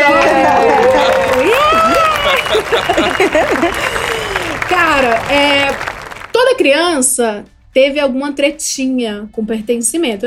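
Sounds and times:
laughter: 0:00.0 - 0:05.2
audience applause: 0:00.0 - 0:06.4
speech: 0:05.0 - 0:10.2.

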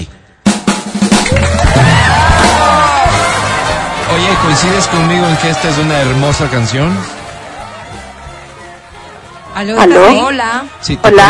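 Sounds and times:
audience applause: 0:01.3 - 0:09.8
speech: 0:04.3 - 0:07.2, 0:09.6 - 0:11.2.

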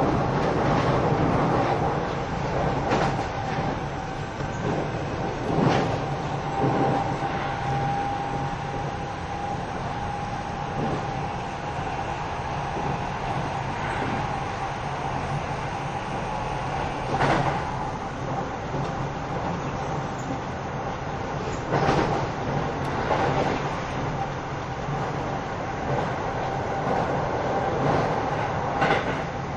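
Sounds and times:
train running with rumble and rattle: 0:00.0 - 0:29.5.

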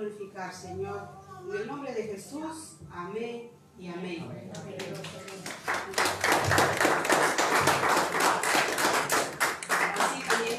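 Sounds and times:
speech: 0:00.0 - 0:08.4
audience clapping along: 0:04.6 - 0:10.5.

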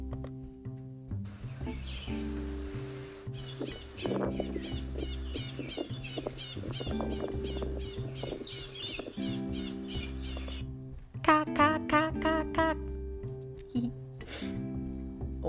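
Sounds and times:
low musical backing: 0:00.0 - 0:15.4
echo parakeet chirping and squawking: 0:02.9 - 0:10.8.

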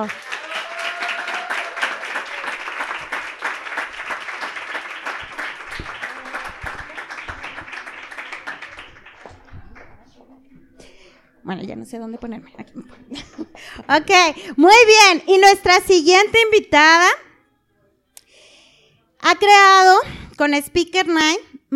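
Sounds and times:
speech: 0:00.0 - 0:00.3, 0:11.5 - 0:17.2, 0:19.4 - 0:21.7
audience applause: 0:00.0 - 0:10.2
laughter: 0:00.4 - 0:09.5, 0:12.7 - 0:13.8.

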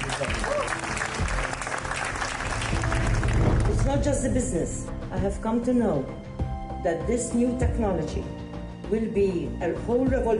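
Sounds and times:
audience applause for the Maltese government: 0:00.0 - 0:04.0
speech: 0:03.9 - 0:10.3.

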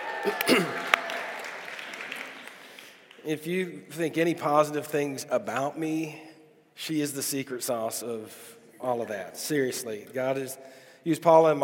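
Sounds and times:
round of applause: 0:00.0 - 0:03.4
speech: 0:00.2 - 0:00.8, 0:03.2 - 0:11.6.

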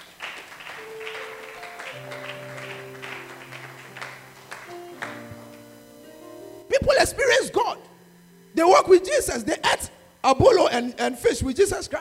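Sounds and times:
audience clapping: 0:00.0 - 0:05.8
speech: 0:06.9 - 0:07.9, 0:08.6 - 0:11.9.

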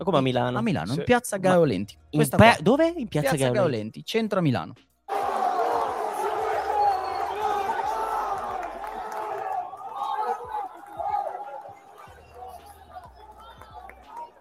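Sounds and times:
speech: 0:00.0 - 0:04.9
Ecuador football fans cheering in a square in Milan: 0:05.1 - 0:14.3.

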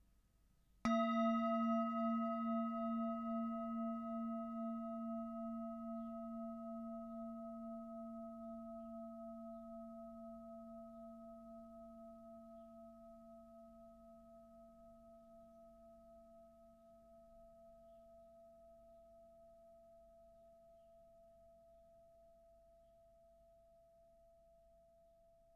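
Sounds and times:
singing bowl struck and ringing: 0:00.9 - 0:17.0.

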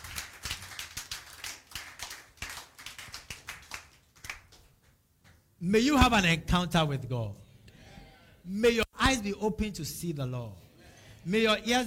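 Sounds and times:
crowd clapping: 0:00.0 - 0:05.0
speech: 0:05.6 - 0:07.4, 0:08.5 - 0:10.6, 0:11.2 - 0:11.8.

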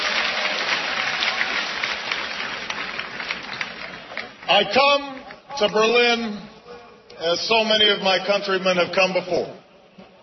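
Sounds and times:
large crowd cheering in Tiergarten Park, Berlin: 0:00.0 - 0:05.6
speech: 0:04.5 - 0:06.5, 0:07.2 - 0:09.6.

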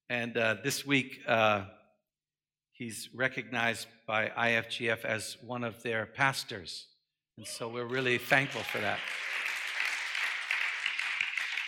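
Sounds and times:
speech: 0:00.1 - 0:01.8, 0:02.8 - 0:09.4
audience applause: 0:07.9 - 0:11.6.

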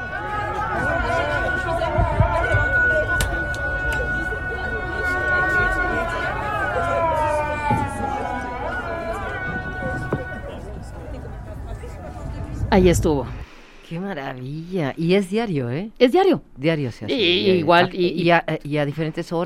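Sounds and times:
Islamic call to prayer over mosque loudspeakers: 0:00.0 - 0:11.0
speech: 0:12.7 - 0:19.4.

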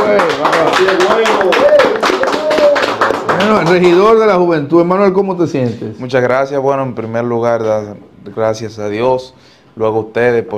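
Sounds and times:
people talking and cheering: 0:00.0 - 0:04.1
group applause: 0:00.0 - 0:04.3
speech: 0:03.5 - 0:10.5.

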